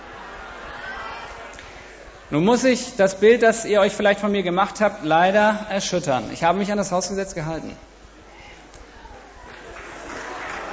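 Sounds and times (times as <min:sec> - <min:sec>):
speech: 0:02.3 - 0:07.9
applause: 0:09.5 - 0:10.7.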